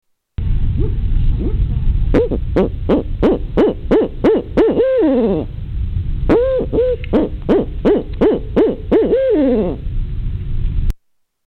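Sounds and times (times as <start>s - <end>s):
low rumbling background noise: 0.4s - 11.0s
owl hooting: 0.8s - 5.5s, 6.3s - 9.9s.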